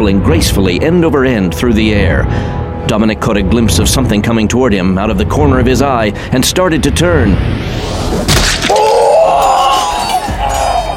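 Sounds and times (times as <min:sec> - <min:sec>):
speech: 0:00.0 - 0:09.1
rumbling background: 0:00.0 - 0:10.9
person screaming: 0:08.6 - 0:10.9.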